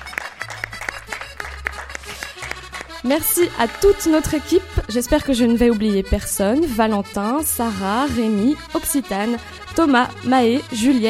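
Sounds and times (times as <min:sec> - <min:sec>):
applause in the hall: 0:00.0 - 0:03.1
speech: 0:03.0 - 0:11.0.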